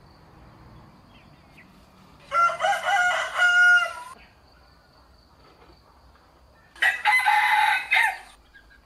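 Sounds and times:
rooster crowing: 2.2 - 4.2, 6.8 - 8.4.

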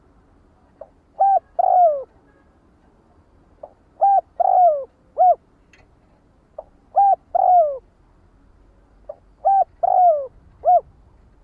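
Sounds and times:
spotted dove cooing: 1.2 - 2.1, 3.6 - 5.4, 6.6 - 7.9, 9.1 - 10.9.

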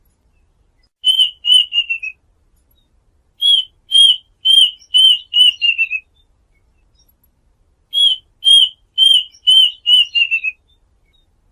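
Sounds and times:
duck whistled calls: 1.0 - 2.2, 3.4 - 6.1, 8.0 - 10.6.

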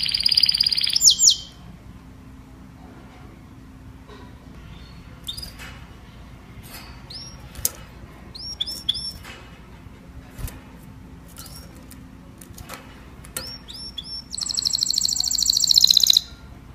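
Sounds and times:
domestic canary singing: 0.0 - 1.7, 4.6 - 9.3, 13.4 - 16.7.

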